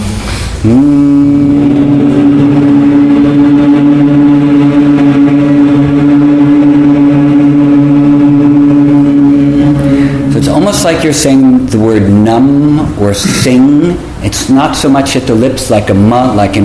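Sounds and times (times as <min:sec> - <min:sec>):
speech: 0:00.6 - 0:01.3, 0:11.1 - 0:16.6
high-pitched bee-like humming breath: 0:00.6 - 0:10.5.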